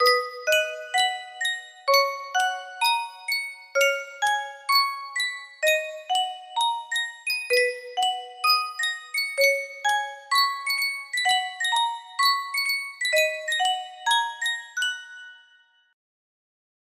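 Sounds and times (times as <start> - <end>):
Yunsheng music box melody: 0.0 - 16.0.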